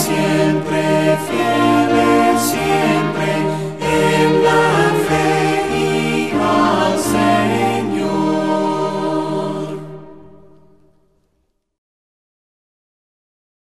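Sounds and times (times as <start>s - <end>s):
Spanish hymn singing with instruments: 0.0s - 10.9s.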